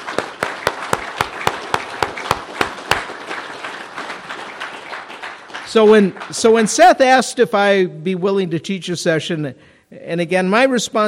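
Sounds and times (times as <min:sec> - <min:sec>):
audience applause: 0:00.0 - 0:06.6
loud steady rhythmic clap: 0:00.0 - 0:07.2
speech: 0:05.7 - 0:11.0.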